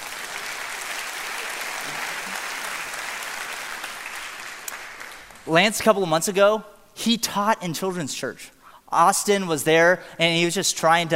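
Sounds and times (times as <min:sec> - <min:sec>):
audience clapping: 0:00.0 - 0:05.6
speech: 0:05.5 - 0:11.1.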